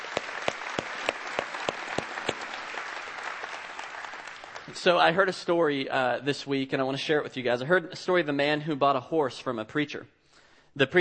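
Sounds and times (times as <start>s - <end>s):
audience applause: 0.0s - 4.8s
speech: 4.8s - 10.2s, 10.8s - 10.9s.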